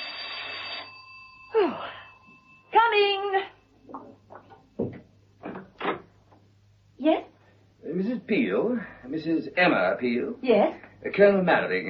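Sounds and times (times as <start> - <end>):
doorbell buzzing: 0.0 - 3.5
faint hum: 0.0 - 11.8
speech: 8.3 - 11.8.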